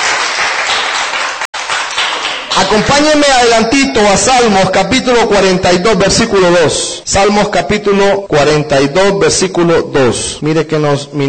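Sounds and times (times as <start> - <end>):
congregation clapping hands during a church service: 0.0 - 4.4
speech: 2.6 - 11.2.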